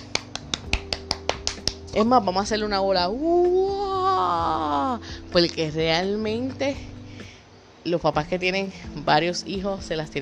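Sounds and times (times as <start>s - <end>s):
one person clapping alone: 0.0s - 2.0s
speech: 2.0s - 6.9s, 7.9s - 10.1s.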